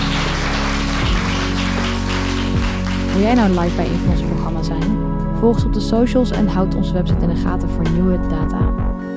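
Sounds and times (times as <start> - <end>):
audience applause: 0.0 - 4.8
speech: 3.2 - 9.0.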